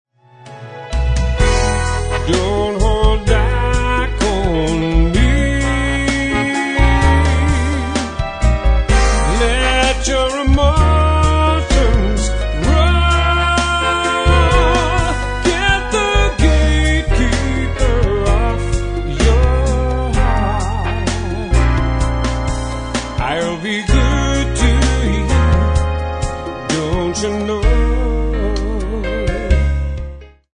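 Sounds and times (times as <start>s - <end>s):
slow dance music: 0.4s - 30.4s.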